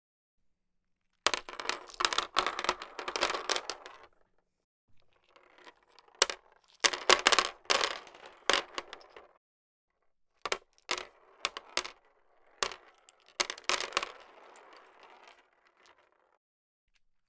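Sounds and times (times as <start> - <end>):
chess pieces dropping on a chess board: 1.3 - 4.1, 5.4 - 9.3, 12.6 - 15.4.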